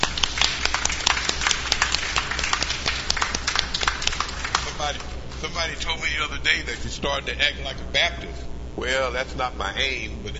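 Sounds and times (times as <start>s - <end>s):
audience clapping hands: 0.0s - 5.7s
speech: 4.9s - 10.3s.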